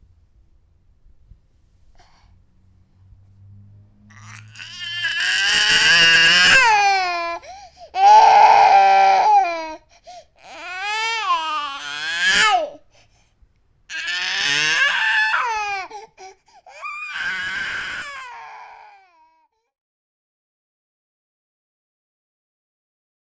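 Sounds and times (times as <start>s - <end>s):
grandchild crying: 4.1s - 9.8s, 10.4s - 12.8s, 13.9s - 16.0s, 16.7s - 19.4s.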